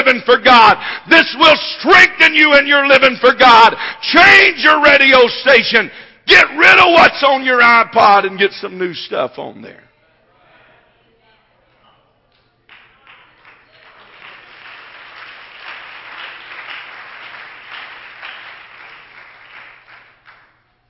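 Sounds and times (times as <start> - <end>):
speech: 0.1 - 9.8
audience clapping: 12.6 - 20.8.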